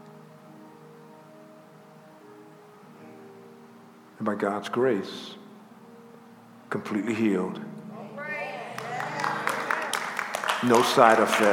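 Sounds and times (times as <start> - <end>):
speech: 4.2 - 5.4, 6.7 - 7.7, 10.6 - 11.5
congregation hand claps in a church service: 8.8 - 11.5.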